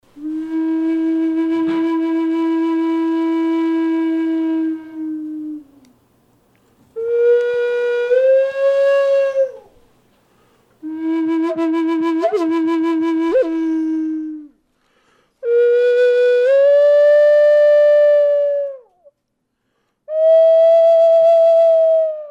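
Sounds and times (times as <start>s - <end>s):
flute melody: 0.1s - 5.8s, 7.0s - 9.7s, 10.8s - 14.5s, 15.4s - 18.9s, 20.1s - 22.2s.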